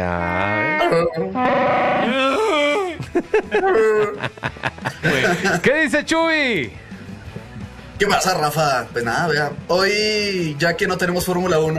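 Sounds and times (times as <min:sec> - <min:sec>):
speech: 0:00.0 - 0:00.2, 0:00.9 - 0:02.5, 0:03.1 - 0:06.8, 0:08.0 - 0:11.7
person imitating a Wookiee growl: 0:00.0 - 0:03.0
laughter: 0:02.2 - 0:05.8.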